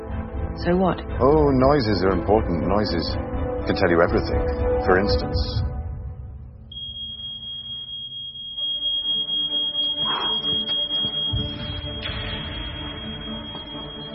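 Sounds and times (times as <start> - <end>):
speech: 0.6 - 5.7
smoke alarm going off: 6.7 - 14.1.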